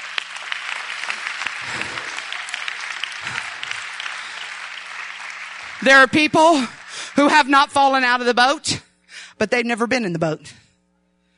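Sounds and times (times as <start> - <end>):
crowd clapping in a large room: 0.0 - 8.3
speech: 5.8 - 8.8, 9.4 - 10.6.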